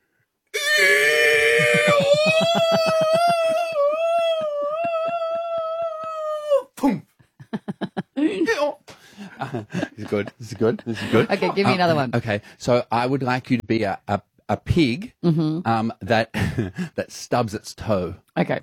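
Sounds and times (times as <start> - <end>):
laughter: 0.6 - 6.5, 7.4 - 8.6, 9.2 - 12.0
person vocally imitating a donkey falling from a plane: 0.6 - 6.8
speech: 2.3 - 3.4, 6.8 - 7.0, 9.5 - 18.6.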